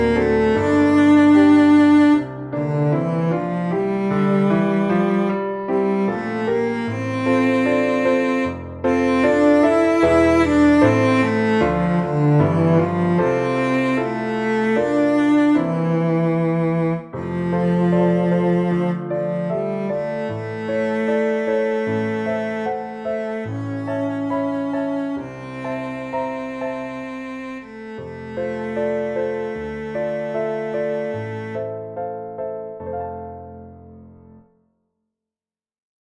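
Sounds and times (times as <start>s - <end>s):
synth cello: 0.0s - 32.2s
piano: 0.0s - 34.6s.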